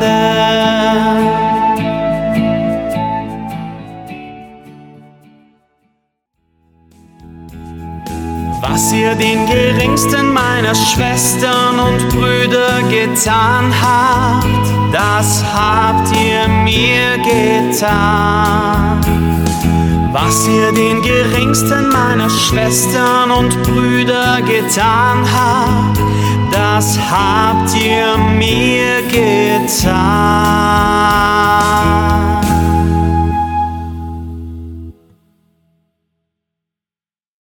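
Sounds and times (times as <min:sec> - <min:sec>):
song: 0:00.0 - 0:05.9, 0:06.7 - 0:35.2.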